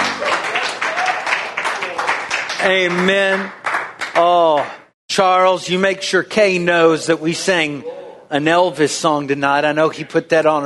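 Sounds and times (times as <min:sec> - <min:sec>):
seated church congregation clapping hands: 0:00.0 - 0:04.8
speech: 0:02.6 - 0:03.6, 0:04.2 - 0:10.6.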